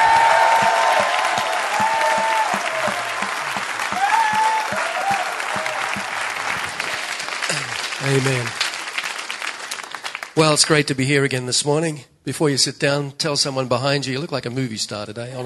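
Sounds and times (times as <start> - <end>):
audience applause: 0.0 - 10.7
speech: 8.1 - 8.6, 10.4 - 15.4.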